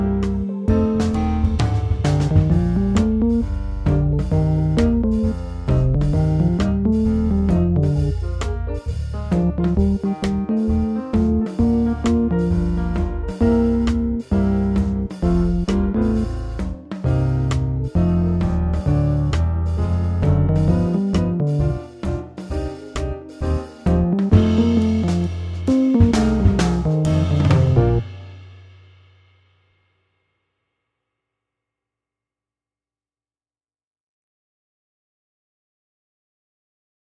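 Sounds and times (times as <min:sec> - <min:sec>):
bass flute playing: 0:00.0 - 0:22.0, 0:23.4 - 0:28.0.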